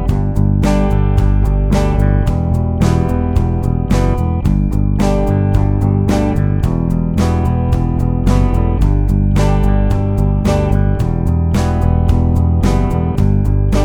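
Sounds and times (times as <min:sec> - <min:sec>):
lead guitar backing track music: 0:00.0 - 0:13.8.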